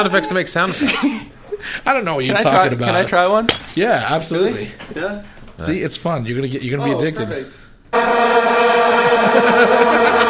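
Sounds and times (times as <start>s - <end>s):
speech: 0.0s - 10.2s
laughter: 0.6s - 1.3s, 8.8s - 10.2s
vuvuzela blaring: 7.9s - 10.2s.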